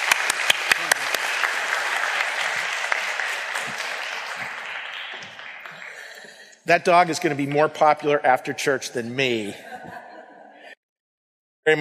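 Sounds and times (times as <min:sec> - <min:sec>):
audience applause: 0:00.0 - 0:06.5
speech: 0:06.7 - 0:09.7
laughter: 0:09.2 - 0:10.8.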